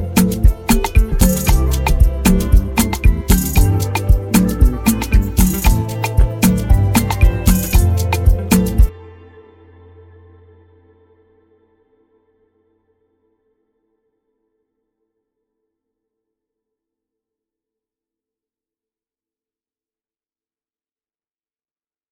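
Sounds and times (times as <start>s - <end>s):
gospel dance instrumental: 0.0s - 8.9s.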